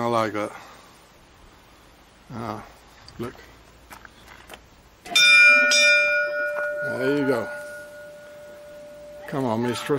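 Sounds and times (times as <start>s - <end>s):
speech: 0.0s - 0.7s, 2.3s - 3.5s, 6.8s - 7.6s, 9.3s - 9.9s
bell rung at a closed door: 5.1s - 9.9s.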